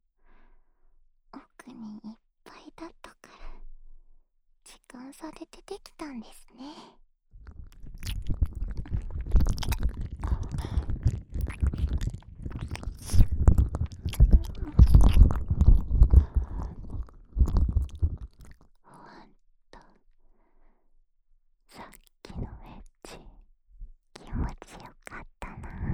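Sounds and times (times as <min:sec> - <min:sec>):
ear licking in the left ear: 0:07.4 - 0:18.7.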